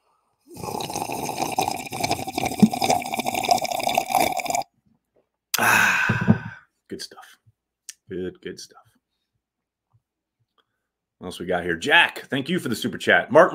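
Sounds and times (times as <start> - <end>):
slurping a drink: 0.5 - 4.7
speech: 8.4 - 8.8, 11.2 - 13.5.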